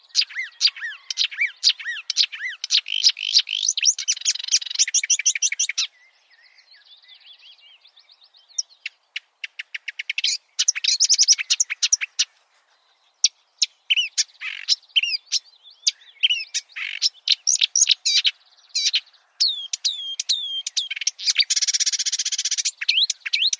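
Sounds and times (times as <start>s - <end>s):
marsh warbler singing: 0.0s - 23.5s.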